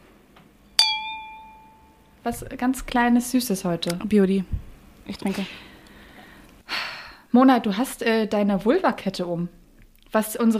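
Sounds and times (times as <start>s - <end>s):
cups clinking in a toast: 0.8s - 2.0s
speech: 2.2s - 5.7s, 7.4s - 10.5s.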